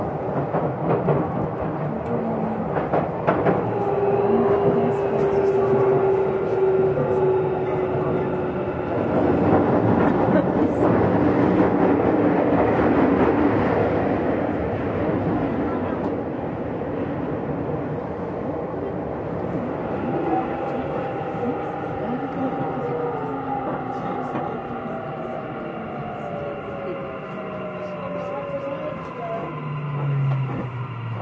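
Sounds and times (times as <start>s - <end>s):
running train rumble: 0.0s - 31.2s
voice: 1.8s - 2.8s, 3.7s - 11.1s, 19.8s - 30.6s.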